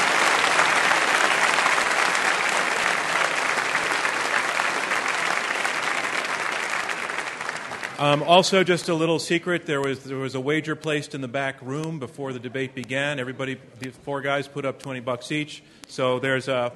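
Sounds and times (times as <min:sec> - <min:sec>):
audience applause: 0:00.0 - 0:08.7
speech: 0:08.0 - 0:16.7.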